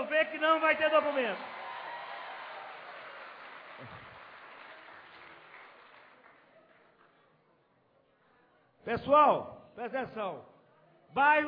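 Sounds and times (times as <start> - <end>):
speech: 0.0 - 1.6, 8.9 - 10.5, 11.1 - 11.4
audience applause: 0.6 - 7.0.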